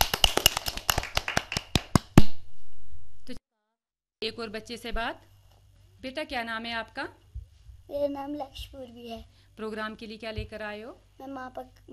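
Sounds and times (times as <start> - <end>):
children clapping: 0.0 - 2.4
speech: 4.2 - 5.3, 6.0 - 7.2, 7.9 - 11.9.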